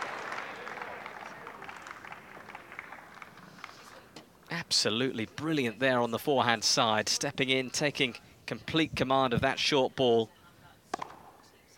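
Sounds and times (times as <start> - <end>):
crowd applause: 0.0 - 4.1
speech: 4.5 - 10.4.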